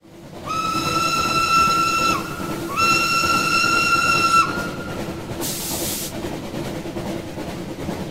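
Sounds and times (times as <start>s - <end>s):
train: 0.0s - 8.0s.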